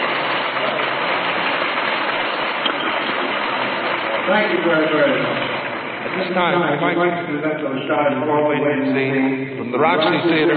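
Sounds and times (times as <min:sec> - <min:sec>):
audience applause: 0:00.0 - 0:08.3
speech: 0:04.3 - 0:05.5, 0:06.1 - 0:10.5.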